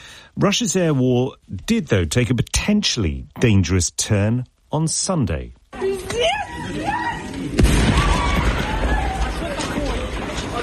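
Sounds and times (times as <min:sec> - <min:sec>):
speech: 0:00.4 - 0:05.8
people screaming as a train is struck by a drone: 0:05.8 - 0:10.3
Russian drone strike on a train: 0:07.6 - 0:08.8.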